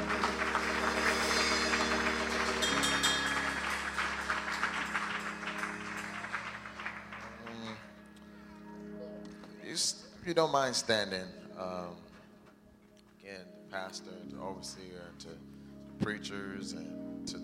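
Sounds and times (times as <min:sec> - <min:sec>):
audience clapping hands: 0:00.0 - 0:08.7
speech: 0:10.3 - 0:12.0, 0:13.8 - 0:17.4.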